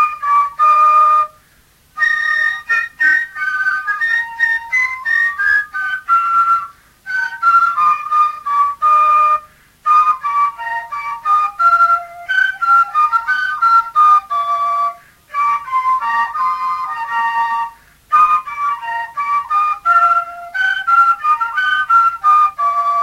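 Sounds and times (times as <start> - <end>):
fife playing: 0.0 - 1.4, 2.0 - 23.0.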